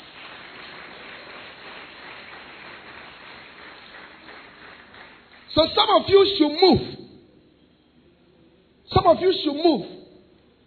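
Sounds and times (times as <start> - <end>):
audience clapping hands: 0.0 - 6.0
speech: 5.5 - 7.0, 9.1 - 10.0.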